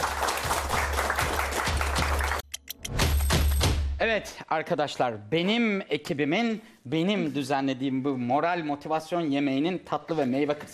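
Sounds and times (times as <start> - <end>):
audience applause: 0.0 - 2.4
speech: 4.0 - 10.7.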